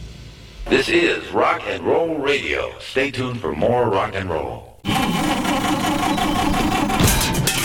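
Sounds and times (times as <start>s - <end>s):
speech: 0.7s - 5.7s
car engine labouring and sputtering: 4.9s - 7.5s.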